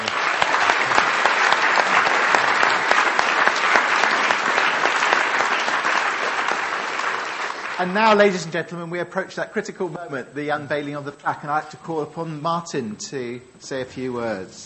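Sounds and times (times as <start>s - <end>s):
audience round of applause: 0.0s - 8.4s
speech: 7.8s - 14.6s.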